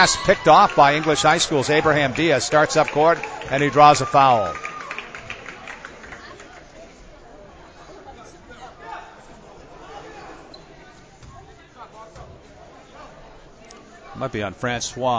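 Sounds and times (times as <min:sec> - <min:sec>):
speech: 0:00.0 - 0:04.7, 0:14.2 - 0:15.1
scattered shouts: 0:00.0 - 0:05.2
crowd chatter at a basketball game in a gym: 0:00.0 - 0:15.1
squeaking footsteps: 0:10.1 - 0:11.5.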